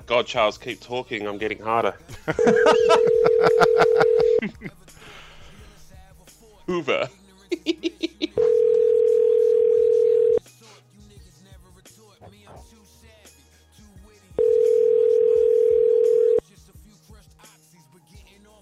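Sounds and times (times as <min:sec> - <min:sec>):
speech: 0:00.1 - 0:05.2, 0:06.7 - 0:08.0
laughter: 0:02.1 - 0:04.8, 0:07.5 - 0:08.5
telephone line ringing tone: 0:02.8 - 0:04.4, 0:08.4 - 0:10.4, 0:14.4 - 0:16.4.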